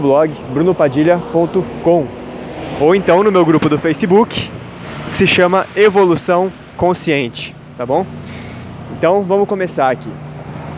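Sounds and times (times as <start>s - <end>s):
speech: 0.0s - 2.2s, 2.8s - 4.6s, 5.2s - 8.4s, 9.0s - 10.3s
street traffic noise: 0.0s - 10.7s.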